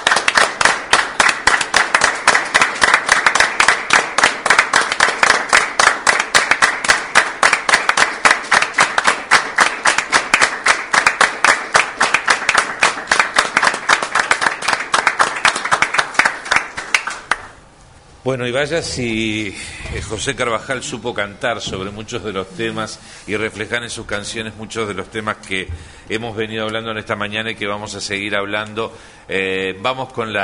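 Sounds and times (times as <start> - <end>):
standing applause: 0.0 - 17.5
speech: 18.3 - 30.4.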